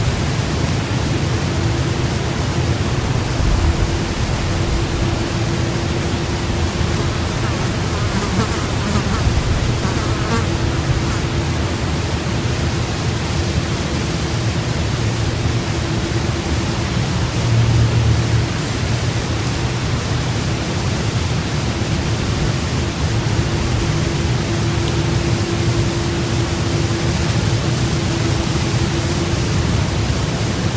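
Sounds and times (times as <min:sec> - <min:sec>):
a few insects in a forest: 0:00.0 - 0:20.2, 0:20.9 - 0:30.7
light breeze in a forest: 0:00.0 - 0:30.7.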